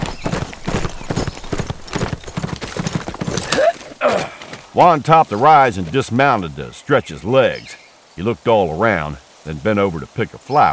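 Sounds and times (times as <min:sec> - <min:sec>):
horse galloping: 0:00.0 - 0:04.7
speech: 0:04.0 - 0:10.7.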